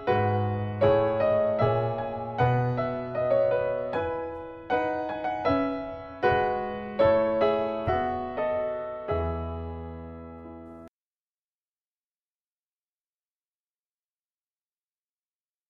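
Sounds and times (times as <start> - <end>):
meditative piano: 0.0 - 10.9.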